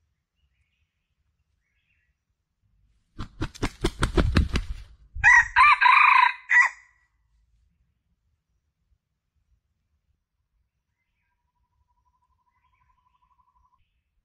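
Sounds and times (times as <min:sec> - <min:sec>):
Red junglefowl crowing: 0:05.2 - 0:06.9.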